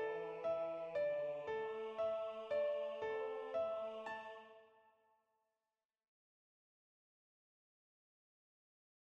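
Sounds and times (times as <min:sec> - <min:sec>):
piano: 0:00.0 - 0:04.9.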